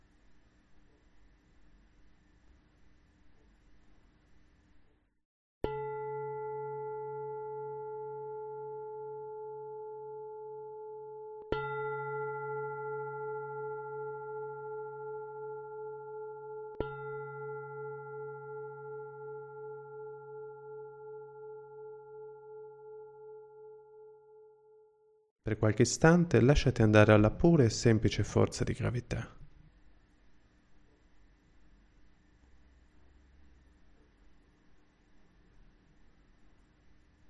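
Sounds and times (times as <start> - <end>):
meditation bell strikes: 5.7 - 24.2
speech: 25.5 - 29.4.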